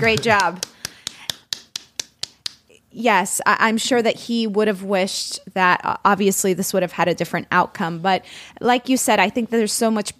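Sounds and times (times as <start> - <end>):
speech: 0.0 - 0.7, 3.0 - 10.1
big clap: 0.0 - 2.6.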